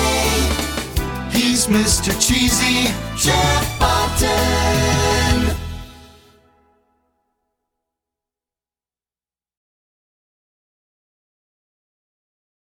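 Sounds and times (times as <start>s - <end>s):
song: 0.0s - 7.0s.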